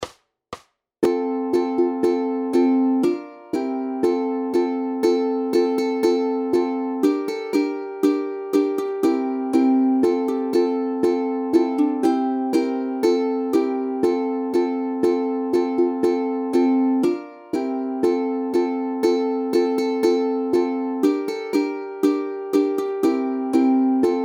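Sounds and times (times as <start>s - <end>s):
ukulele: 1.0s - 24.2s.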